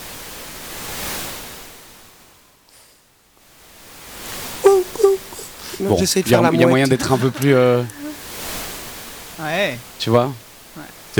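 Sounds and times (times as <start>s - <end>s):
pink noise shaped into ocean waves: 0.0s - 2.7s, 3.5s - 11.1s
laughter: 4.6s - 8.3s
speech: 5.8s - 8.0s, 9.4s - 11.1s.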